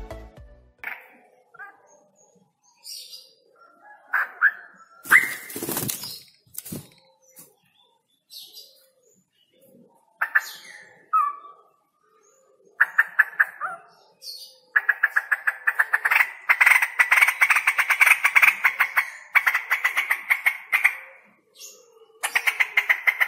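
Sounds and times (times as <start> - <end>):
male straw-headed bulbul singing with rolling trills: 0.8 - 23.2.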